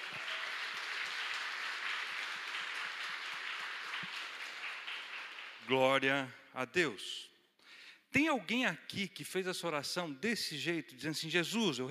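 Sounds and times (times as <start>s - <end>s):
audience applause: 0.0s - 5.7s
speech: 5.7s - 7.3s, 8.1s - 11.8s.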